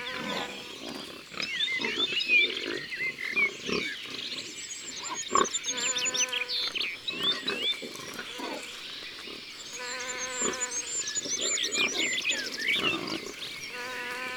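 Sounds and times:
insect buzz: 0:00.0 - 0:01.1, 0:05.3 - 0:07.0, 0:07.9 - 0:14.3
small birds chirping and twittering: 0:00.0 - 0:14.3
wild boar grunting: 0:00.0 - 0:14.3.

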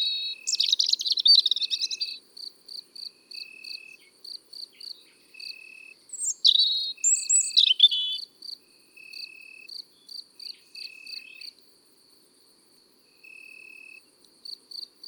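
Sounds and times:
European robin song: 0:00.0 - 0:02.2, 0:03.3 - 0:08.3, 0:09.9 - 0:11.6.

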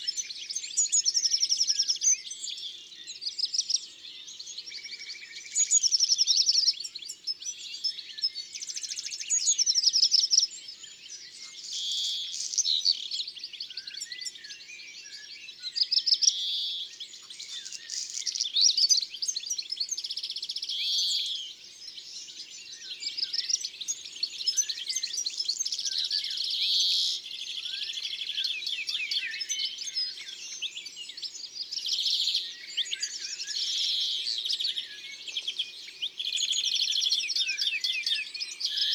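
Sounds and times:
European greenfinch song: 0:00.0 - 0:38.9.

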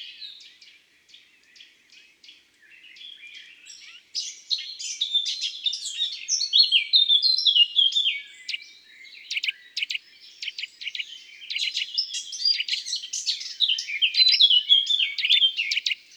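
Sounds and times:
thrush nightingale calls: 0:03.7 - 0:16.1.

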